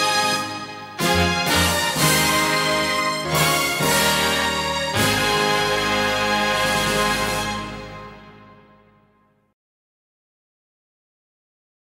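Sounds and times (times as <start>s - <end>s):
karaoke music: 0.0s - 8.5s.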